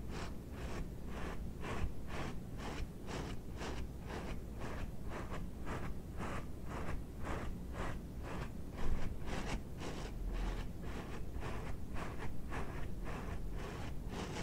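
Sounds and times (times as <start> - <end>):
rubber dishwashing gloves rubbing and scratching: 0.1 - 14.4.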